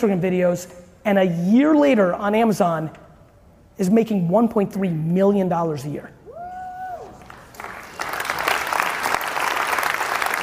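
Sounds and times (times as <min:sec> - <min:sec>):
speech: 0:00.0 - 0:03.0, 0:03.8 - 0:06.2
whoop or whistle: 0:06.2 - 0:07.3
crowd applause: 0:07.2 - 0:10.4.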